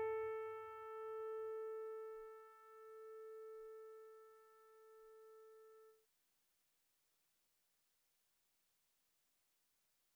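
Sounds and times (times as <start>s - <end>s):
Yamaha P515 digital piano playing notes F4 G4 A4: 0.0s - 5.8s.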